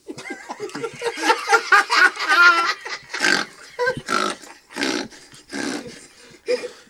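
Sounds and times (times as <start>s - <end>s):
laughter: 0.0s - 6.8s
man snoring: 2.6s - 6.4s.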